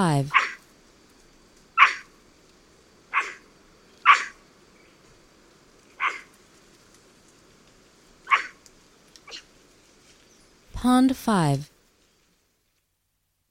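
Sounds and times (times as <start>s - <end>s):
speech: 0.0s - 0.4s, 10.8s - 11.7s
white-throated capuchin barking: 0.3s - 0.6s, 1.8s - 2.1s, 3.1s - 4.4s, 6.0s - 6.3s, 8.3s - 8.6s, 9.3s - 9.5s.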